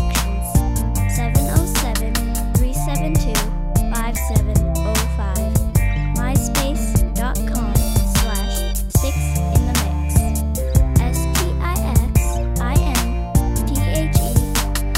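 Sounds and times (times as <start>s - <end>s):
guitar: 0.0s - 14.9s.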